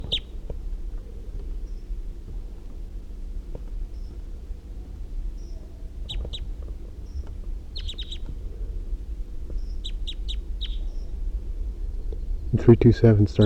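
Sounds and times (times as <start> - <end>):
wild bird calling: 0.0 - 2.0, 3.9 - 12.6
speech: 12.6 - 13.4.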